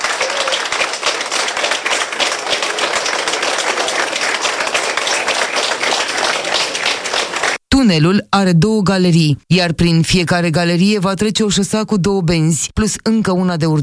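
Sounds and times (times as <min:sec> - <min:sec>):
crowd applauding in an underground tunnel: 0:00.0 - 0:07.6
speech: 0:07.9 - 0:13.8.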